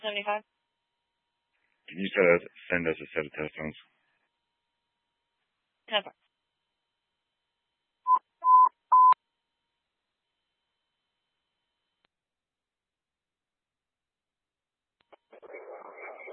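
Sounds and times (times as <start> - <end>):
speech: 0.0 - 0.6, 1.9 - 3.9, 5.9 - 6.2
card reader beeping: 8.1 - 9.2.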